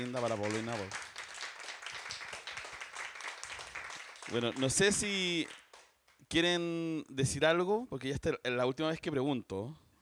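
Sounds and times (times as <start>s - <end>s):
speech: 0.0s - 1.1s, 4.3s - 5.6s, 6.2s - 9.8s
audience applause: 0.0s - 5.8s.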